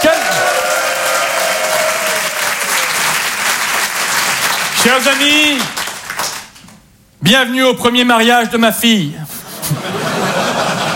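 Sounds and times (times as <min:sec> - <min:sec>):
voices cheering: 0:00.0 - 0:03.2
room full of people applauding loudly: 0:00.0 - 0:06.6
speech: 0:04.9 - 0:05.8, 0:07.2 - 0:09.3
laughter: 0:09.3 - 0:10.9.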